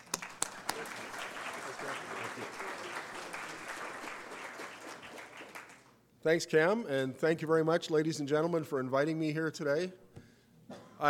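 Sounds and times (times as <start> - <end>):
audience applauding to welcome a speaker at a presentation in Lethbridge: 0.0 - 5.9
speech: 6.2 - 10.0.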